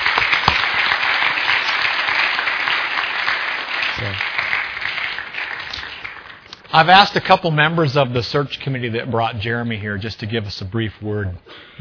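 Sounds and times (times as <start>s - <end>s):
audience applause: 0.0s - 6.5s
speech: 6.8s - 11.7s.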